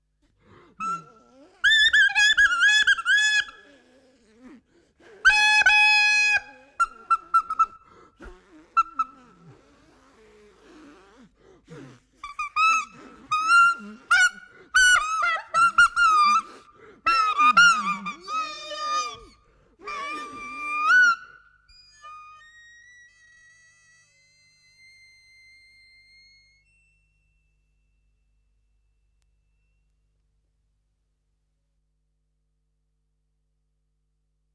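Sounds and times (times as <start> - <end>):
clarinet: 0.4 - 27.9.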